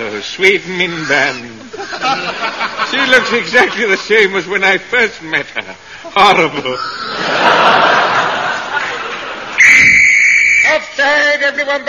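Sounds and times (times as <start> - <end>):
speech: 0.2 - 8.0, 10.7 - 11.8
laughter: 0.9 - 4.5, 5.6 - 9.6
danger whistle warning of tunnel blasting: 9.6 - 10.9.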